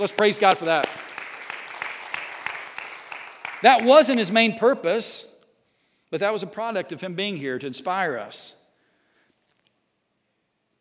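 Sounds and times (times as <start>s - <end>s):
speech: 0.0s - 1.0s, 3.6s - 5.3s, 6.1s - 8.6s
audience applause: 0.0s - 4.3s.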